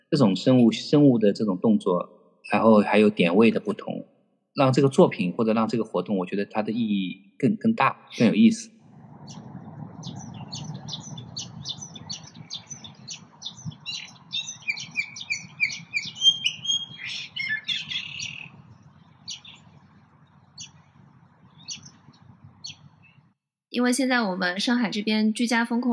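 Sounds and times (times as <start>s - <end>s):
birds chirping and trilling in the field: 0.0s - 3.9s, 8.0s - 23.4s
speech: 0.1s - 10.2s, 23.8s - 25.9s
steady low rumble: 8.8s - 23.4s.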